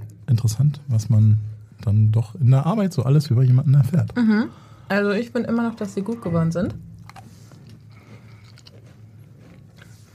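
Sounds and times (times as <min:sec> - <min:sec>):
speech: 0:00.3 - 0:06.9
soft chewing of gluten-free cookies: 0:06.8 - 0:10.1
gluten-free cookies being eaten, crisp crunches: 0:06.9 - 0:10.1.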